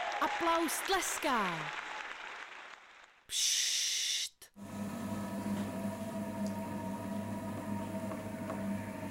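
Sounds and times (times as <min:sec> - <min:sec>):
speech: 0:00.2 - 0:01.9, 0:03.3 - 0:03.7
potter's wheel spinning: 0:04.6 - 0:09.0.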